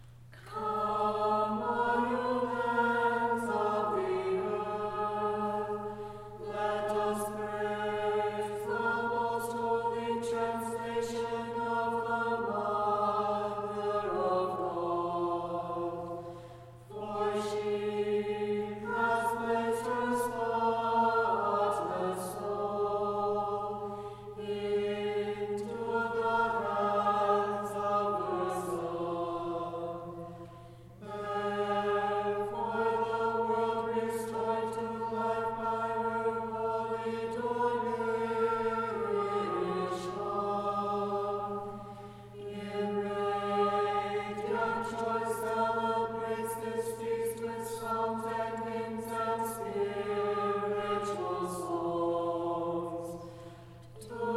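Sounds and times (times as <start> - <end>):
Kievan chant sung in unison: 0.5 - 54.3.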